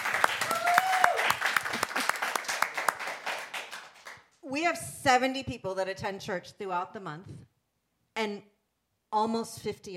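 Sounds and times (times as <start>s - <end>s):
audience applause: 0.0s - 4.2s
whoop or whistle: 0.4s - 1.4s
speech: 4.5s - 7.5s, 8.2s - 8.5s, 9.1s - 9.9s.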